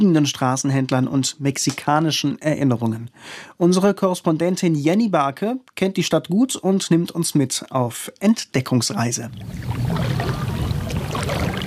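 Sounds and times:
speech: 0.0 - 10.6
wooden canoe paddle dipping into smooth glassy water in Mexico City: 9.3 - 11.6.

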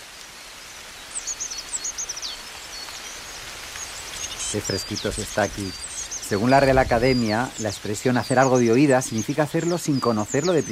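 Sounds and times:
hiss and rustle: 0.0 - 10.7
coal tit singing in winter: 3.8 - 10.7
speech: 4.5 - 10.7.

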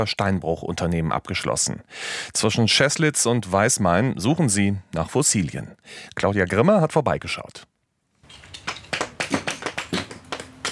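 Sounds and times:
speech: 0.0 - 7.7
hammer splitting small limestone slabs at a quarry fossil dig: 8.4 - 10.7.

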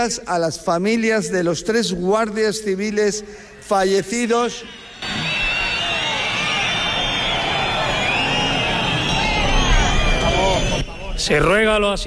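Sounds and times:
speech: 0.0 - 5.3, 11.3 - 12.0
large crowd whistling: 3.1 - 12.0
large crowd booing and jeering: 4.5 - 11.5.

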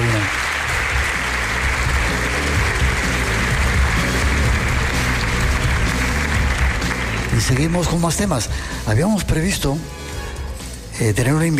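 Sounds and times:
theatre audience applause: 0.0 - 8.5
speech: 7.5 - 10.0, 11.0 - 11.5.

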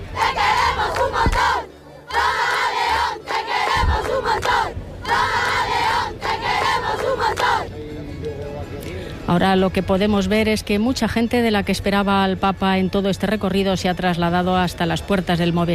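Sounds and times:
crowd shouting and cheering in street: 0.0 - 7.7
speech: 9.3 - 15.7.

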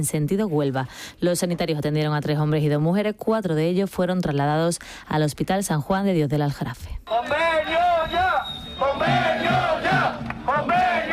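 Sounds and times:
speech: 0.0 - 10.8
crowd shouting a chant in unison: 7.1 - 11.1.

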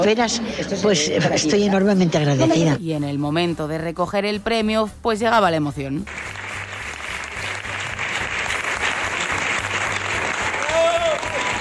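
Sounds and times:
speech: 0.0 - 6.3
audience ovation applause: 6.1 - 11.6.

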